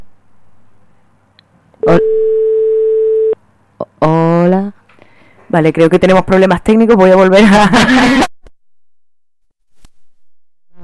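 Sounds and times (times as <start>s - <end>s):
speech: 1.8s - 2.4s, 5.5s - 8.3s
telephone busy signal: 1.8s - 3.4s.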